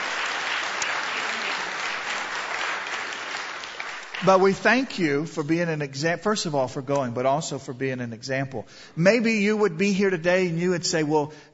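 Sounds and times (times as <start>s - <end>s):
audience clapping: 0.0s - 5.0s
speech: 4.2s - 11.5s.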